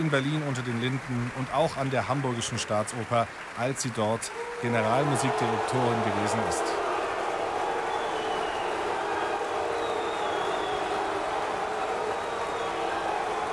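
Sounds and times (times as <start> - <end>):
speech: 0.0 - 6.8
opera audience applauding: 0.0 - 13.5
opera audience booing: 4.4 - 13.5.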